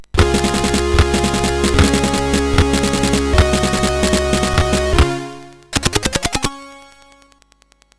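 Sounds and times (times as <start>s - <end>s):
SID MOS6581R3 chip sound: 0.2s - 7.3s.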